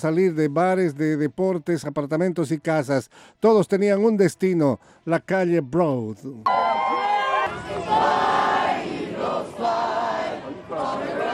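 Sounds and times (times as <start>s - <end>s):
speech: 0.0s - 6.6s
crowd celebrating in the street: 6.5s - 11.3s.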